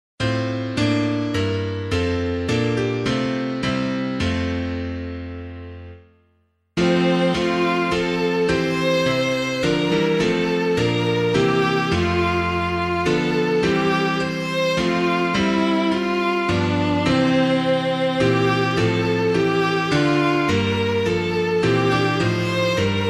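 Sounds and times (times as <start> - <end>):
piano: 0.2 - 23.0.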